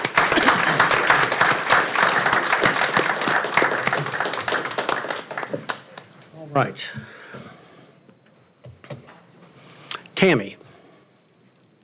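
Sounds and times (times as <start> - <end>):
audience applause: 0.0 - 6.1
speech: 6.6 - 7.0.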